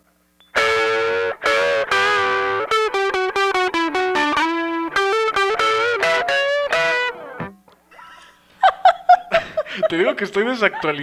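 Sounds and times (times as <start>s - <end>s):
guitar played in rock style: 0.5s - 7.7s
laughter: 7.9s - 11.0s
speech: 9.9s - 11.0s.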